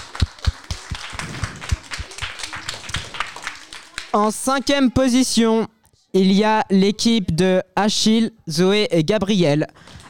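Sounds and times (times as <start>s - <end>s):
small group of people applauding: 0.0s - 4.4s, 9.8s - 10.0s
speech: 4.1s - 10.0s.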